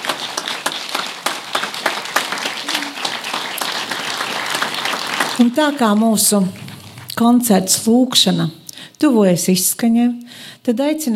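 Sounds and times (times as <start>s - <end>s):
concert audience applause: 0.0s - 7.1s
speech: 5.4s - 6.6s, 7.2s - 11.1s.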